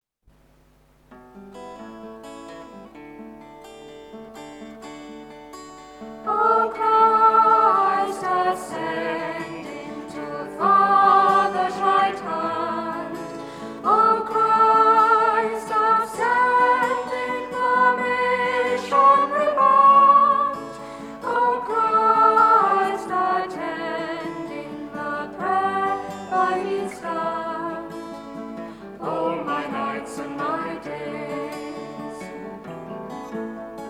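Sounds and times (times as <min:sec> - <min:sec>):
guitar: 0:00.4 - 0:33.8
unison voices singing a short verse anthem: 0:06.2 - 0:32.7.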